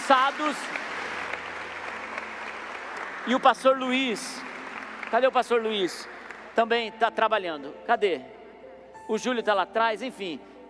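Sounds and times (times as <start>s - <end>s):
steady applause from a large group: 0.0s - 6.6s
speech: 0.1s - 1.0s, 3.2s - 4.5s, 5.1s - 8.3s, 9.1s - 10.5s.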